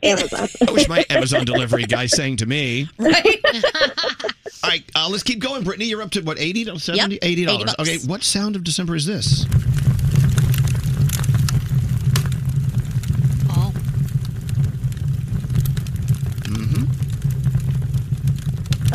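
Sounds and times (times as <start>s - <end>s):
laughter: 0.0s - 8.2s
speech: 0.0s - 10.4s
fireplace fire crackling: 0.0s - 18.9s
low fireplace roar: 6.8s - 18.9s.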